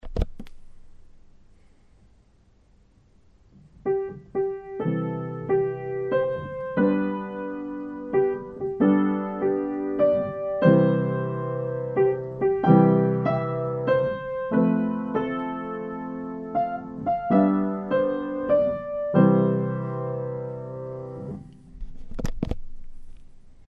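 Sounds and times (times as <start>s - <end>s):
piano chords and melody: 3.8s - 21.8s.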